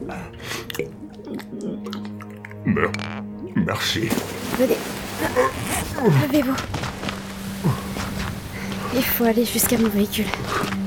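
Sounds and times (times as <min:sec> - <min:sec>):
speech: 0:00.0 - 0:00.8, 0:02.7 - 0:06.9, 0:08.9 - 0:10.8
person drinking slowly, sipping and swallowing: 0:00.0 - 0:03.6.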